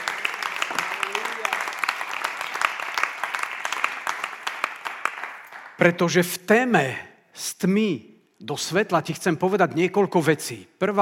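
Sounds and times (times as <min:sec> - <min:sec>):
audience applause: 0:00.0 - 0:05.8
speech: 0:05.8 - 0:11.0.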